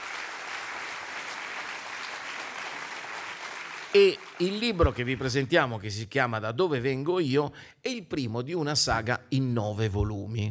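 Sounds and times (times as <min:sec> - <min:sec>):
audience applause for an author at a book presentation in Massagno: 0:00.0 - 0:05.4
speech: 0:03.9 - 0:10.4.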